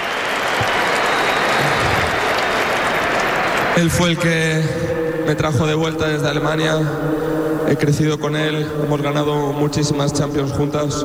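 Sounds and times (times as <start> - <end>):
audience applause: 0.0 - 4.8
speech: 3.8 - 11.0.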